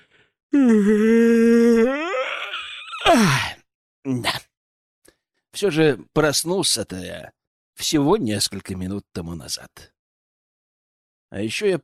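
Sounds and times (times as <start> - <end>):
long drawn-out yawn: 0.0 - 3.6
speech: 0.5 - 2.0, 5.6 - 9.9, 11.3 - 11.8.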